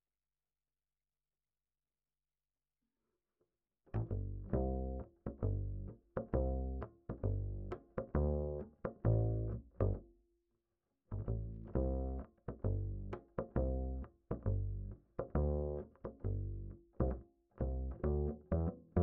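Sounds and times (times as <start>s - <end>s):
bass line: 4.0s - 10.0s, 11.2s - 19.0s.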